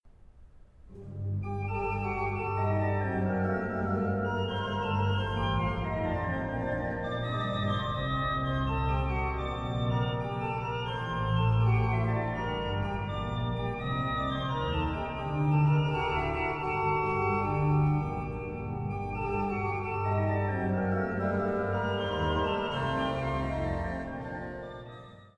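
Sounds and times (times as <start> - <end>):
organ partita: 0.9 - 25.3.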